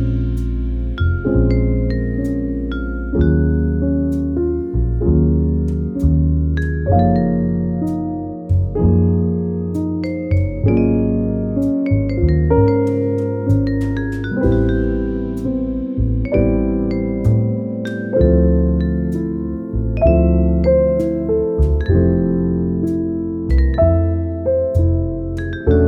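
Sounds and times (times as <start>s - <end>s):
relaxing cozy soothing jazz music: 0.0s - 25.8s.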